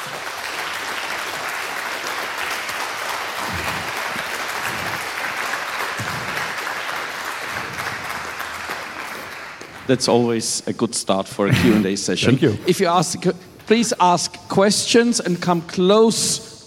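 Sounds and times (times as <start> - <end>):
round of applause: 0.0 - 9.9
speech: 9.9 - 16.6.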